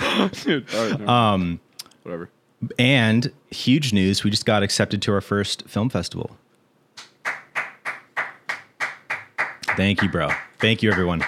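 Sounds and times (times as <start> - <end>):
speech: 0.2 - 6.4, 9.8 - 11.2
hand clapping: 7.0 - 11.2.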